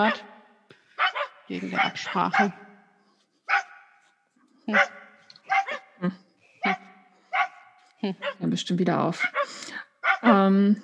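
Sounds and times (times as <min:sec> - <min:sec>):
dogs barking: 0:00.0 - 0:00.3, 0:01.0 - 0:02.7, 0:03.4 - 0:03.9, 0:04.7 - 0:06.0, 0:06.6 - 0:08.5, 0:09.1 - 0:10.5
speech: 0:00.0 - 0:00.3, 0:01.5 - 0:02.6, 0:04.7 - 0:05.0, 0:06.0 - 0:06.8, 0:08.0 - 0:10.8.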